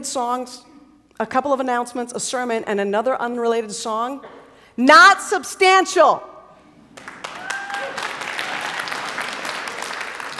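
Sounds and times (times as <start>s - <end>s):
speech: 0.0s - 6.3s
audience applause: 7.0s - 10.3s.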